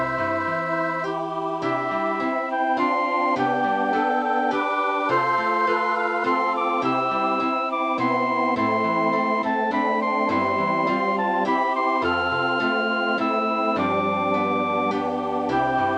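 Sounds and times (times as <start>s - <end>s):
flute or violin: 0.0s - 15.9s
three-part female choir singing: 0.2s - 2.4s, 13.9s - 15.9s.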